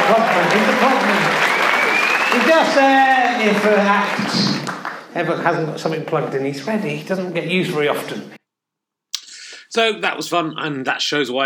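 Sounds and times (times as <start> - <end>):
crowd clapping: 0.0 - 6.2
speech: 0.1 - 1.5, 2.3 - 8.4, 9.8 - 11.4.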